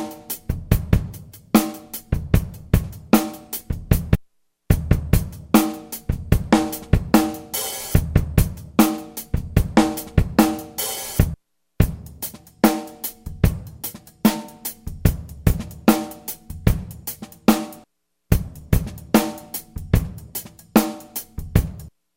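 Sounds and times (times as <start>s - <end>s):
drum loop at 74 bpm from Yamaha A4000: 0.0s - 21.9s.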